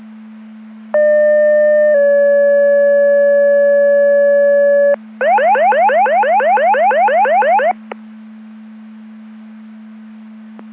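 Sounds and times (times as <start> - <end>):
siren: 0.9 - 7.9.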